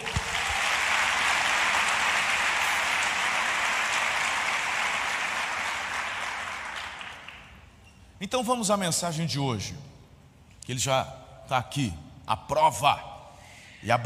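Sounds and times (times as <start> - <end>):
audience applause: 0.0 - 7.6
speech: 8.2 - 9.9, 10.7 - 13.1, 13.8 - 14.0.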